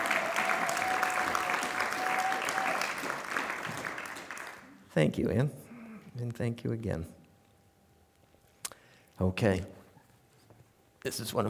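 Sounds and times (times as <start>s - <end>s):
audience applause: 0.0s - 4.8s
speech: 5.0s - 5.6s, 6.2s - 7.2s, 9.2s - 9.8s, 11.0s - 11.4s.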